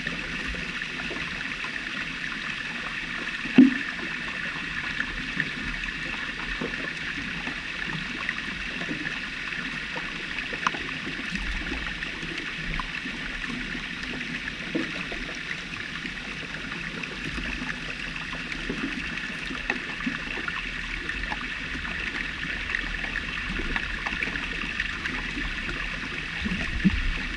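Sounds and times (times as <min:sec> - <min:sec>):
floating ice crackling and fizzing underwater in Jökulsárlón glacier lagoon: 0:00.0 - 0:27.3
floating ice knocking together underwater in Jökulsárlón glacier lagoon, Iceland: 0:03.5 - 0:04.0.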